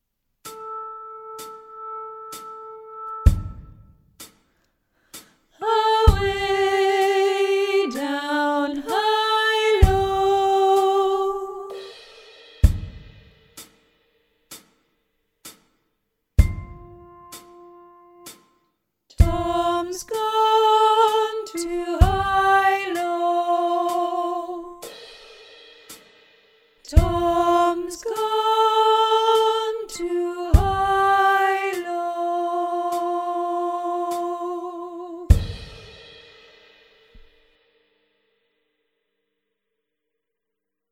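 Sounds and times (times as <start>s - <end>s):
soprano guide vocal: 5.6s - 11.9s, 19.2s - 24.9s, 26.9s - 35.6s.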